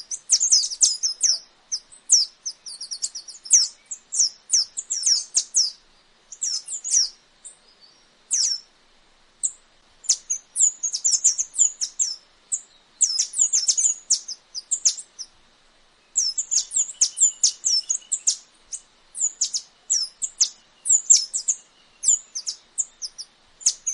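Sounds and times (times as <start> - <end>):
tanager (saíra-dourada) song: 0.0 - 8.7, 9.4 - 15.3, 16.1 - 23.9.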